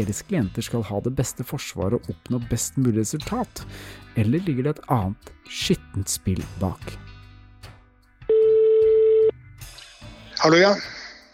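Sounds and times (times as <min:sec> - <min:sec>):
speech: 0:00.0 - 0:07.1, 0:10.4 - 0:11.0
electronic telephone tone as a call is placed: 0:08.3 - 0:09.3.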